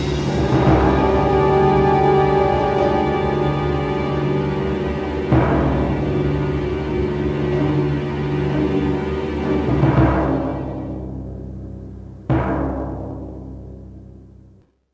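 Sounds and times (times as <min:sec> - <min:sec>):
slow music: 0:00.0 - 0:11.4.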